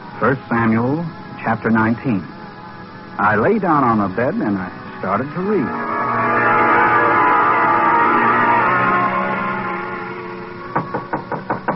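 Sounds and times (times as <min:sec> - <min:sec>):
speech: 0:00.2 - 0:02.3, 0:03.2 - 0:06.0
ringing harmonic tone: 0:03.8 - 0:11.1
knocks on a hotel room door: 0:10.8 - 0:11.7.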